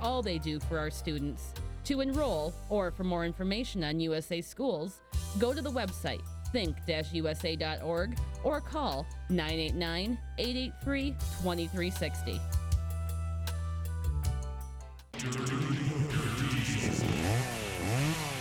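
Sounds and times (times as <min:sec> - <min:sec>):
bright music: 0:00.0 - 0:04.1, 0:05.0 - 0:15.2
speech: 0:00.0 - 0:12.6, 0:15.2 - 0:15.9
EFCO-style chainsaw engine revving: 0:15.2 - 0:18.3.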